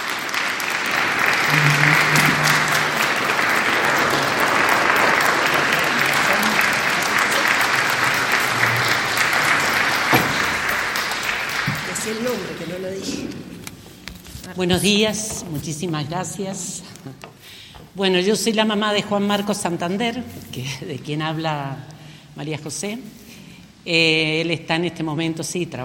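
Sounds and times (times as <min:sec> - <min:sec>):
audience applause: 0:00.0 - 0:12.9
faint voices and cheers: 0:01.0 - 0:11.0
speech: 0:14.6 - 0:23.2, 0:23.8 - 0:25.8.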